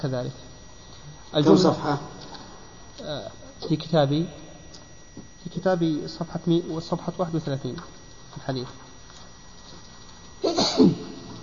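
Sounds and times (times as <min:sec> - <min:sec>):
speech: 0:00.0 - 0:00.5, 0:01.3 - 0:02.2, 0:03.0 - 0:04.4, 0:05.2 - 0:08.8
person sneezing: 0:10.4 - 0:11.2.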